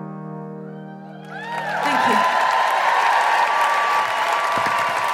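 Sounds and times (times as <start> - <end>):
audience applause and cheering: 1.0 - 5.1.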